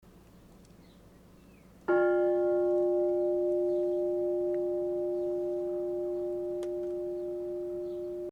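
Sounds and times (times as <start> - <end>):
bell ringing: 1.9 - 8.3.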